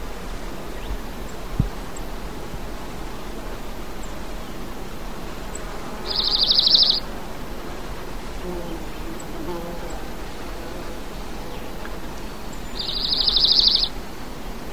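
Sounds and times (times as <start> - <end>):
steady background hiss: 0.0 - 14.7
high pulsed bird trill: 6.1 - 7.0, 12.5 - 13.9.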